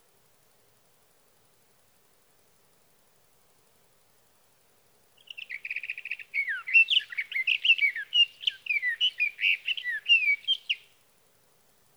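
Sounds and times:
sage thrasher song: 5.2 - 10.9.

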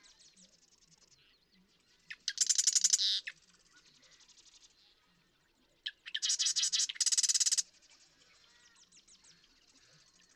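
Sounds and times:
marsh wren singing: 2.1 - 3.3, 5.8 - 7.6.

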